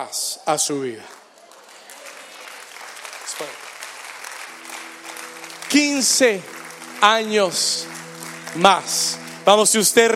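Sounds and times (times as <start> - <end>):
speech: 0.0 - 1.2, 5.7 - 10.1
audience applauding loudly: 1.0 - 10.1
sustained musical tone: 4.4 - 10.1.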